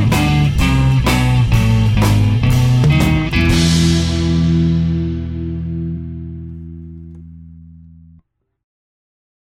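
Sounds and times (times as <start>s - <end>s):
band playing: 0.0s - 7.2s.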